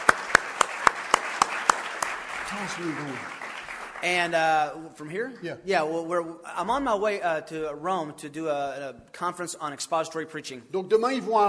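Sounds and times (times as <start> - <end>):
audience applauding: 0.0 - 4.8
speech: 2.5 - 3.4, 4.0 - 11.4.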